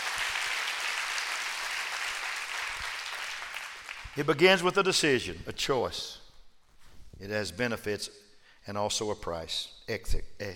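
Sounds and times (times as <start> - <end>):
crowd clapping: 0.0 - 4.4
speech: 4.2 - 6.2, 7.2 - 10.5.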